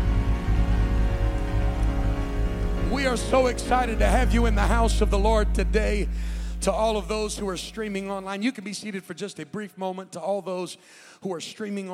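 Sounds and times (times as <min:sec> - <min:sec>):
audience applauding with hand claps: 0:00.0 - 0:04.0
sustained low musical tones: 0:00.0 - 0:08.3
speech: 0:03.0 - 0:11.9.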